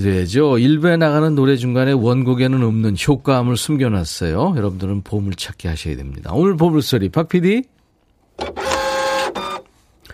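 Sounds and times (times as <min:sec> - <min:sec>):
speech: 0:00.0 - 0:07.8
fax machine receiving a fax: 0:08.4 - 0:09.8.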